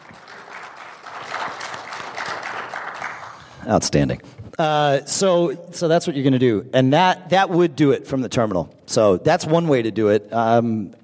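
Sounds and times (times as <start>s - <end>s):
crowd applauding: 0.0s - 3.7s
speech: 3.6s - 11.0s.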